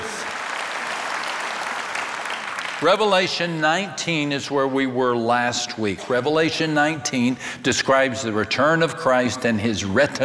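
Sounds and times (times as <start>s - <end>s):
audience applause: 0.0s - 2.9s
speech: 2.8s - 10.2s.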